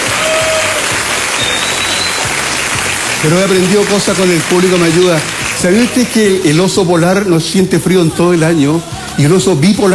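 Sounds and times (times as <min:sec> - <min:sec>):
audience applause: 0:00.0 - 0:06.6
speech: 0:03.2 - 0:09.9.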